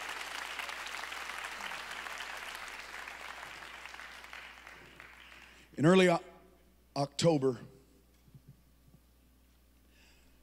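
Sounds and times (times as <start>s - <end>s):
church audience clapping in welcome: 0.0s - 5.7s
speech: 5.8s - 6.3s, 7.0s - 7.7s.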